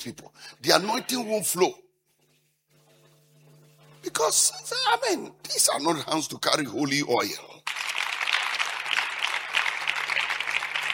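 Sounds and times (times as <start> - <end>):
speech: 0.0 - 1.9, 4.0 - 7.8
audience clapping: 7.6 - 10.9.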